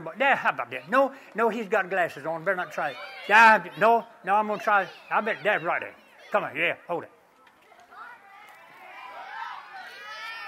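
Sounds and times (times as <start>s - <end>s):
speech: 0.0s - 7.2s
crowd cheering and shouting: 2.6s - 6.6s, 8.0s - 10.4s.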